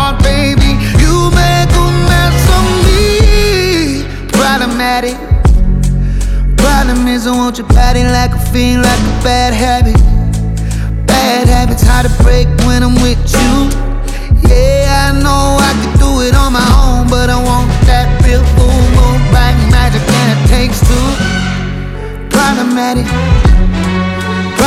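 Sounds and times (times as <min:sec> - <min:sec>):
string music: 0:00.0 - 0:24.6.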